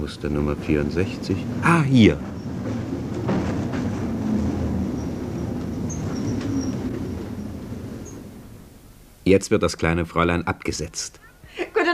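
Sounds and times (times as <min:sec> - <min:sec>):
speech: 0:00.0 - 0:02.4, 0:09.3 - 0:11.2
tram driving fast along empty streets: 0:00.0 - 0:09.2.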